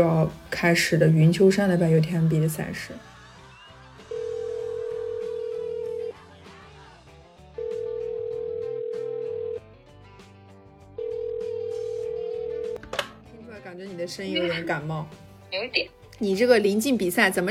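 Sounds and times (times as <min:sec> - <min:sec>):
speech: 0:00.0 - 0:03.1, 0:14.1 - 0:17.4
music: 0:00.0 - 0:17.4
phone ringback tone while placing a call: 0:04.0 - 0:06.2, 0:07.6 - 0:09.6, 0:11.0 - 0:12.8.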